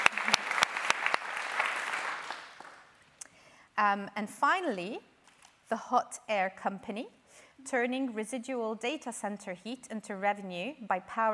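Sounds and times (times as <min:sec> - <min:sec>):
audience applause: 0:00.0 - 0:02.9
speech: 0:03.8 - 0:05.1, 0:05.7 - 0:11.3.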